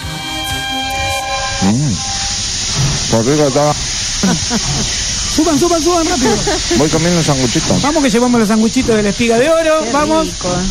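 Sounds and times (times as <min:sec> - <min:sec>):
steam locomotive whistle: 0:00.0 - 0:07.7
hissing steam of a steam locomotive starting up: 0:00.0 - 0:10.6
speech: 0:01.6 - 0:02.2, 0:03.1 - 0:10.6
laughter: 0:03.2 - 0:10.4.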